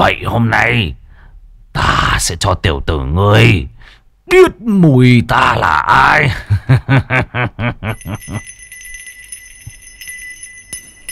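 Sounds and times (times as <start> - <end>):
speech: 0.0 - 1.0, 1.8 - 3.7, 4.3 - 8.6
hand bell being shaken: 7.9 - 11.1.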